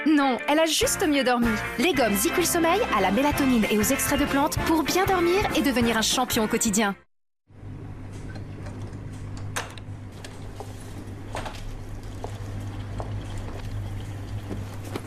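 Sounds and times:
speech: 0.1 - 7.0
dishwasher motor hum: 7.5 - 15.0
dishwasher water sloshing and splashing: 10.1 - 15.0.

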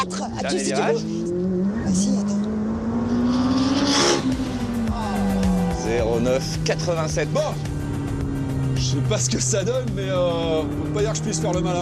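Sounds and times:
speech: 0.0 - 2.4, 5.9 - 7.8, 8.8 - 11.8
rally car engine revving: 0.0 - 11.8.

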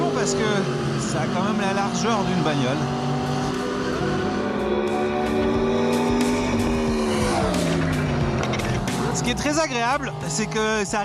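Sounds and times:
Yamaha R1 motorcycle engine revving: 0.0 - 11.0
speech: 0.2 - 3.1, 9.3 - 11.0.

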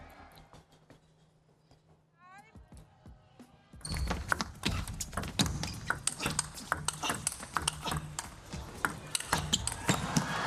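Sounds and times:
table tennis ball struck and bouncing during a match point: 4.0 - 10.3.

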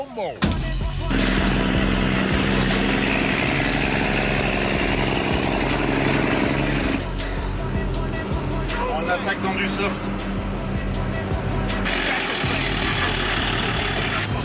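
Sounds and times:
speech: 0.2 - 1.4, 9.0 - 10.3
trial truck engine revving: 0.6 - 14.4.

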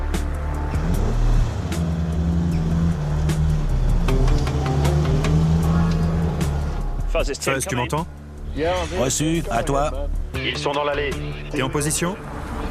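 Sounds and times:
car driving away: 0.0 - 7.1
speech: 7.2 - 12.3.

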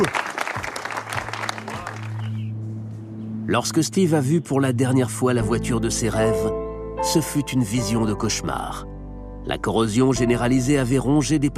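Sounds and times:
studio audience applause: 0.0 - 2.5
speech: 3.5 - 8.9, 9.5 - 11.5.

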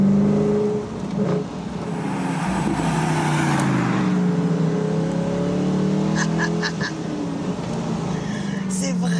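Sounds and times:
naturally aspirated V8 sports car engine: 0.0 - 9.1.

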